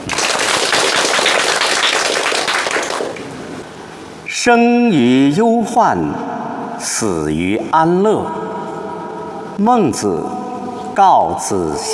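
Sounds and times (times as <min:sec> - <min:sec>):
audience applause: 0:00.0 - 0:03.3
speech: 0:04.4 - 0:08.4, 0:09.6 - 0:10.4, 0:11.0 - 0:11.9.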